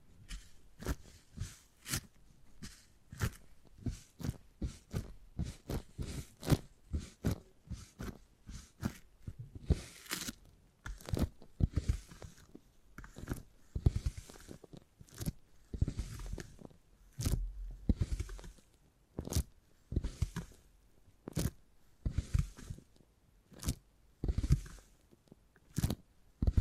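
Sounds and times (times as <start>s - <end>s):
soft rustling: 0.0s - 26.6s
beeswax crackling while handled and pressed: 0.2s - 20.6s.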